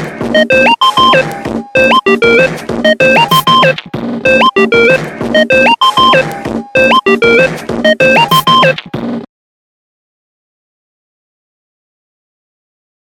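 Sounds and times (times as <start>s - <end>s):
stock music beat: 0.0s - 9.3s.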